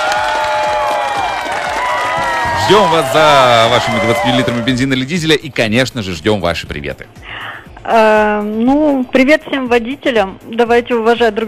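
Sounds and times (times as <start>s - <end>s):
applause: 0.0s - 5.1s
speech: 2.7s - 11.4s.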